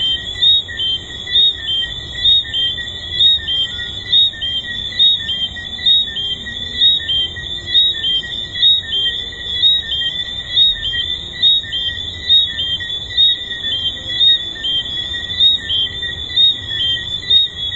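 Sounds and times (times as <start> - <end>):
tree frogs calling: 0.0 - 17.7.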